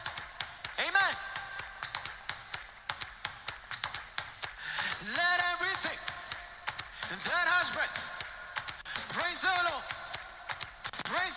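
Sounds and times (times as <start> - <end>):
hands clapping: 0.0 - 11.3.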